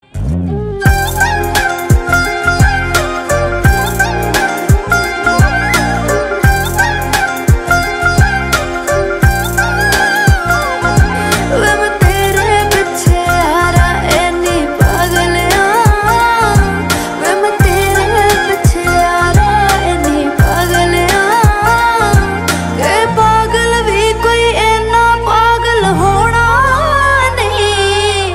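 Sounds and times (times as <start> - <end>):
lyrical instrumental music: 0.0 - 28.3.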